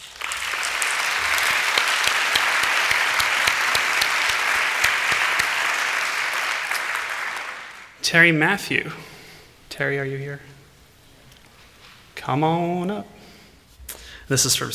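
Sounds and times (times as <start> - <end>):
audience applause: 0.0 - 8.0
speech: 8.1 - 9.1, 9.8 - 10.6, 12.2 - 13.2, 14.3 - 14.7.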